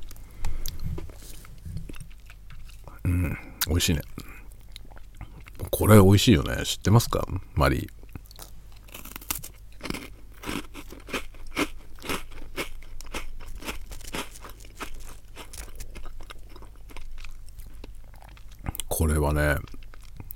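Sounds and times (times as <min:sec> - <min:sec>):
low hum: 0:00.0 - 0:02.1
crunchy chewing of a biscuit: 0:00.0 - 0:05.8, 0:07.8 - 0:20.3
speech: 0:03.1 - 0:04.3, 0:05.8 - 0:08.0.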